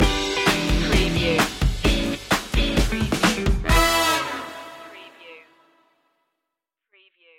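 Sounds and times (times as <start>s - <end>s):
rock funk stinger: 0.0s - 4.2s.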